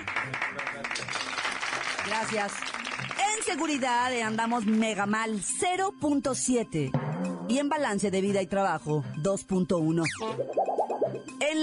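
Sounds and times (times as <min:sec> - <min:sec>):
audience applause: 0:00.0 - 0:04.9
speech: 0:02.0 - 0:10.7, 0:11.4 - 0:11.6.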